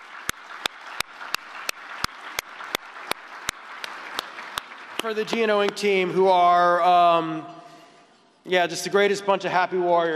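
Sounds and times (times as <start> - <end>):
round of applause: 0.0 - 6.2
speech: 5.0 - 7.6, 8.4 - 10.1.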